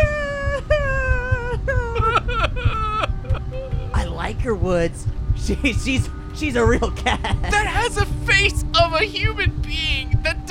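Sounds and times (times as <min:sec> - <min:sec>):
laughter: 0:00.0 - 0:03.8, 0:06.7 - 0:07.9
children crying: 0:00.0 - 0:03.9
steady low rumble: 0:00.0 - 0:10.4
speech: 0:04.7 - 0:10.4.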